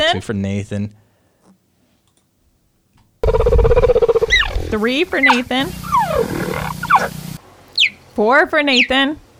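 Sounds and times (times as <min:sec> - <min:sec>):
speech: 0:00.1 - 0:01.0, 0:04.7 - 0:07.2, 0:08.2 - 0:09.2
cheetah chirping call: 0:03.2 - 0:08.0, 0:08.7 - 0:09.0.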